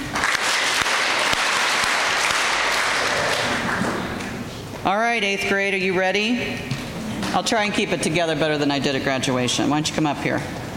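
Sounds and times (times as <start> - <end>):
audience clapping: 0.0 - 4.4
speech: 5.2 - 6.7, 7.3 - 10.6.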